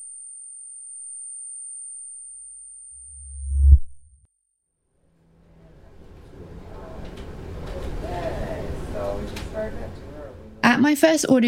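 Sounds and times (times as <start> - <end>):
thin steady high-pitched tinnitus-like ringing: 0.0 - 4.2
noise with voices: 5.4 - 10.6
speech: 10.9 - 11.4.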